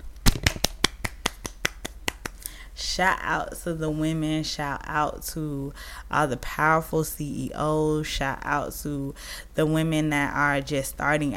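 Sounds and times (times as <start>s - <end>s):
sharp hand claps: 0.2s - 2.4s
speech: 2.8s - 11.3s.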